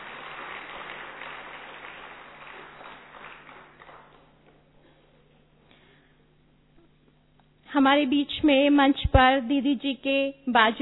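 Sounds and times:
audience clapping to welcome a guest onto the stage: 0:00.0 - 0:04.8
speech: 0:07.8 - 0:10.7.

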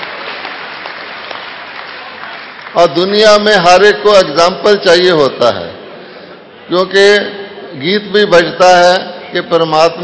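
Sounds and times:
audience applause for a centenary milestone: 0:00.0 - 0:03.0
speech: 0:02.8 - 0:05.8, 0:06.7 - 0:10.0.

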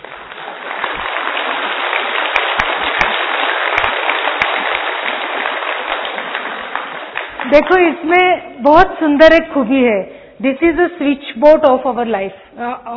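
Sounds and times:
hands clapping: 0:00.0 - 0:08.1
speech: 0:07.5 - 0:12.9.

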